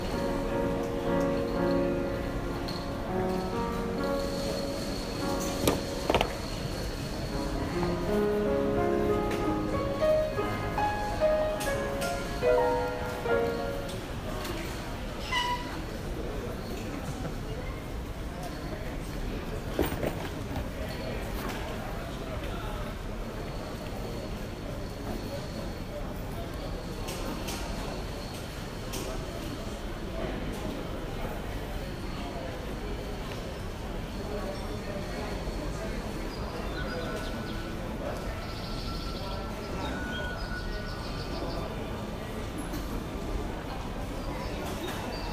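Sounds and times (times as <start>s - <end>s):
Palermo Airport departure lounge ambience: 0.0s - 45.3s.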